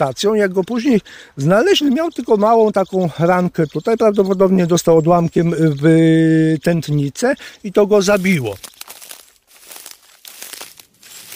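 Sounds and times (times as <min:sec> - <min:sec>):
speech: 0:00.0 - 0:08.7
footsteps crunching on forest floor litter: 0:08.0 - 0:11.3.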